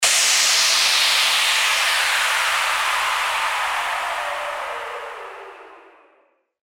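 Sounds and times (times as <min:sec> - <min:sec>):
whoosh: 0:00.0 - 0:06.3.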